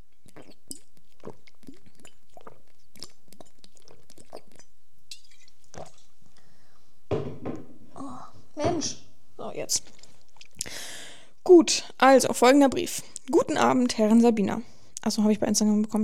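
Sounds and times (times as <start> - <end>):
person drinking close to a microphone: 0.0 - 6.7, 9.8 - 10.8
sharp knock: 7.1 - 7.8
speech: 9.6 - 10.0, 11.5 - 16.0.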